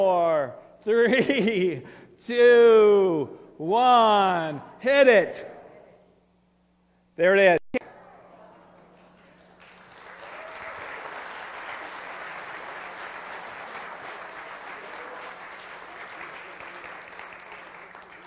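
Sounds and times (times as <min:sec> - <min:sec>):
speech: 0:00.0 - 0:05.6, 0:07.2 - 0:07.6
crowd applauding: 0:08.8 - 0:18.2.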